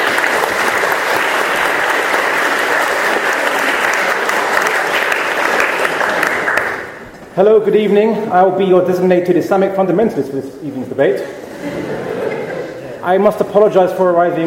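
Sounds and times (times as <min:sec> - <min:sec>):
audience round of applause: 0:00.0 - 0:07.1
speech: 0:07.4 - 0:11.8, 0:13.0 - 0:14.4
laughter: 0:11.2 - 0:13.1.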